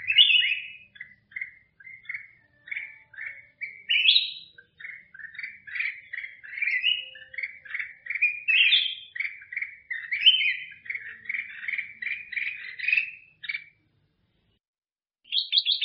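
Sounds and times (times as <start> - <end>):
black-crested bulbul singing: 0.0 - 13.9, 15.2 - 15.8.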